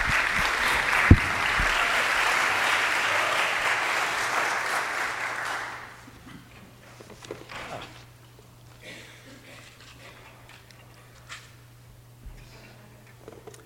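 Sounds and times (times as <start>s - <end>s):
audience applause welcoming a storyteller at a storytelling evening: 0.0s - 6.1s.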